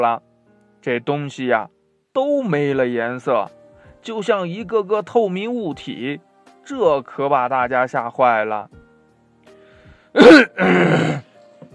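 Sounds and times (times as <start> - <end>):
speech: 0.0 - 8.8, 10.1 - 11.0
throat clearing: 10.2 - 11.3.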